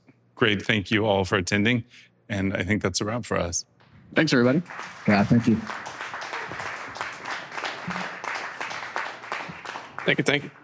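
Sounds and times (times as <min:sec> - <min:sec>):
speech: 0:00.4 - 0:05.9, 0:10.1 - 0:10.6
audience applause: 0:04.2 - 0:10.6.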